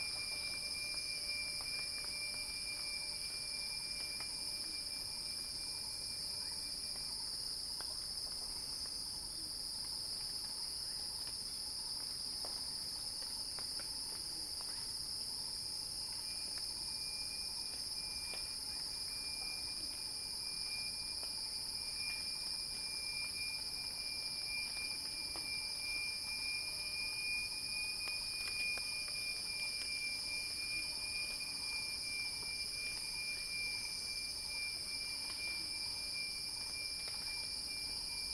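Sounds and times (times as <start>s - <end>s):
cicadas droning: 0.0s - 38.3s
soft ticks: 7.8s - 8.4s.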